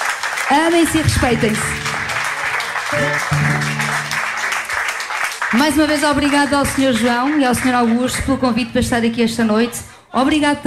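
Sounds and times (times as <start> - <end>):
audience applause: 0.0 - 8.2
speech: 0.5 - 1.9, 2.9 - 4.2, 5.5 - 10.6.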